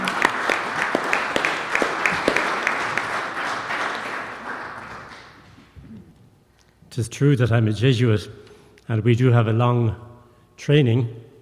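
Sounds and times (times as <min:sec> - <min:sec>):
audience applause at a talk: 0:00.0 - 0:05.8
speech: 0:07.0 - 0:11.2.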